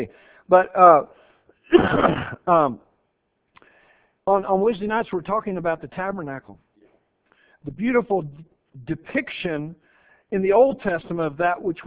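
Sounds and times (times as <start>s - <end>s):
speech: 0.0s - 2.9s, 4.3s - 6.6s, 7.6s - 11.8s
man clearing throat during a Bible talk: 1.7s - 2.7s.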